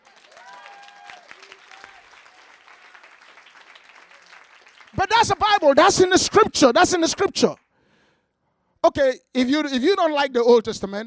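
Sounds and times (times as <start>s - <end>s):
crowd clapping: 0.0s - 7.9s
speech: 5.0s - 7.6s, 8.9s - 11.0s.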